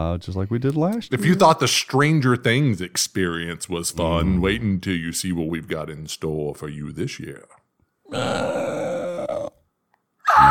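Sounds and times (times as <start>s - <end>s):
speech: 0.0s - 8.9s
raptor dinosaur scream: 8.1s - 9.6s, 10.2s - 10.4s.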